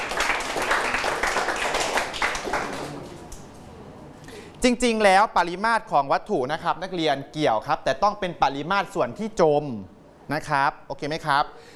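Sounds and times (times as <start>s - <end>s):
students clapping for a classmate: 0.0s - 3.6s
speech: 4.6s - 11.7s.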